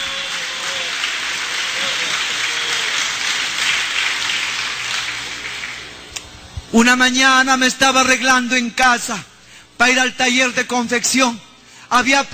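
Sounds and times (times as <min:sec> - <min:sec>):
audience applause: 0:00.0 - 0:05.9
speech: 0:06.7 - 0:12.3.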